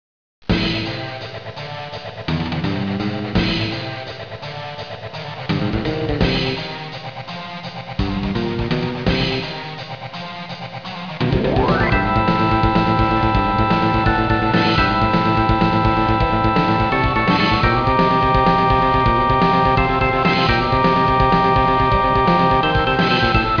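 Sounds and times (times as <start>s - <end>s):
boss battle game music: 0.5s - 23.5s.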